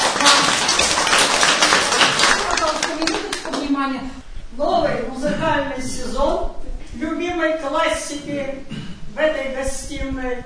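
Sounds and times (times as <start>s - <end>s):
audience applause: 0.0s - 3.7s
speech: 5.4s - 6.5s, 7.4s - 10.4s.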